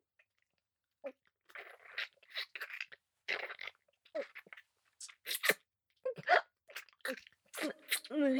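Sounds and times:
deep kissing: 1.5s - 8.1s.

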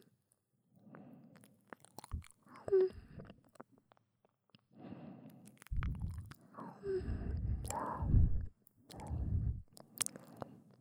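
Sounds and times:
ASMR ear licking: 1.4s - 2.4s, 5.5s - 6.5s, 7.1s - 10.5s.

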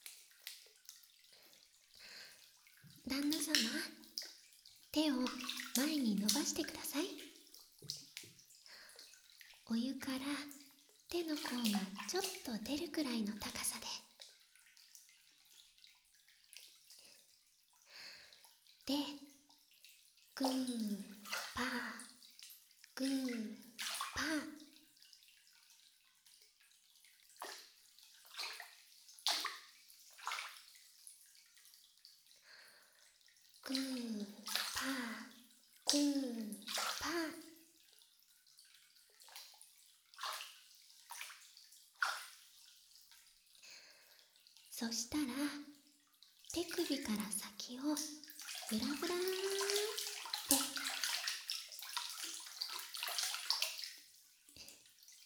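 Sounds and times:
warm bathtub massage: 0.0s - 55.2s.

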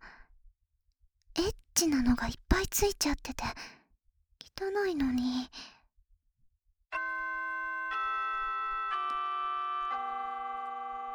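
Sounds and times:
speech: 1.8s - 3.8s, 4.6s - 5.8s
school chime ringing: 7.0s - 11.1s.

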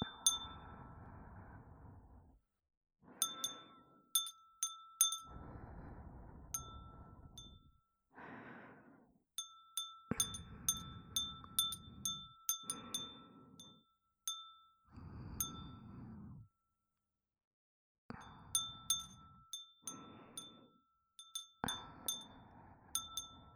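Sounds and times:
glass wind chime: 0.0s - 1.0s, 3.2s - 5.6s, 6.6s - 7.8s, 9.4s - 16.0s, 18.1s - 23.5s
breathing: 0.1s - 2.4s, 3.0s - 4.2s, 5.0s - 9.3s, 10.1s - 13.9s, 14.8s - 16.6s, 18.1s - 23.5s.

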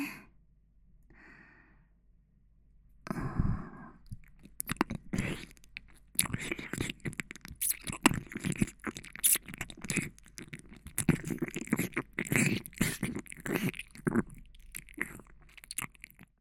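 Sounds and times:
erotic ear licking: 4.1s - 16.3s.

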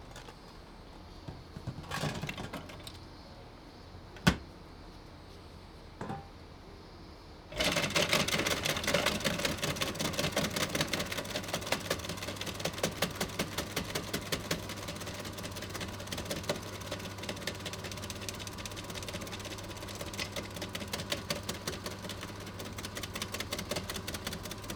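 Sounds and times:
shaved ice machine: 1.6s - 3.0s, 7.5s - 24.7s
distant cicadas: 2.8s - 7.5s.

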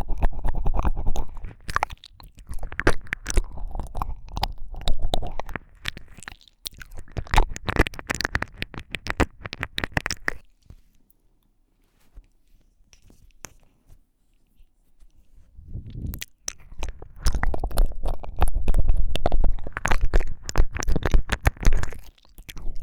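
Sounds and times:
tingly ear licking: 0.0s - 10.9s, 15.6s - 22.8s.

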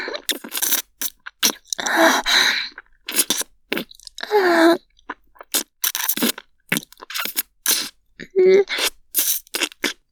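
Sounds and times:
mouth nibbling sounds: 0.2s - 4.3s, 5.4s - 8.0s, 8.7s - 10.0s.

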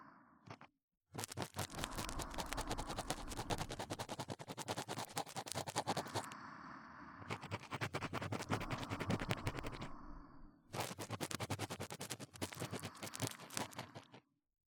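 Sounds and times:
fast ear cleaning ASMR in the left ear: 1.2s - 6.3s, 7.3s - 9.9s, 10.8s - 14.1s.

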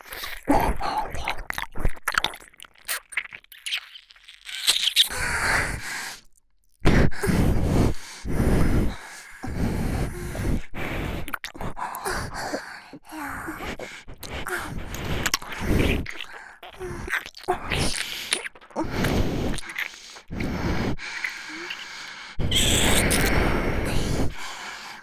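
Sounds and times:
ear licking: 0.0s - 6.3s, 9.9s - 12.4s, 13.6s - 24.6s
double nose breathing: 6.9s - 25.0s.

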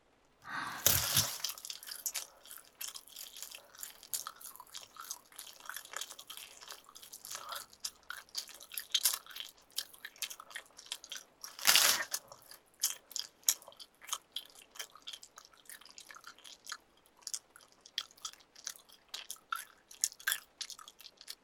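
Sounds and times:
wet chewing and biting of meat: 0.5s - 21.4s.

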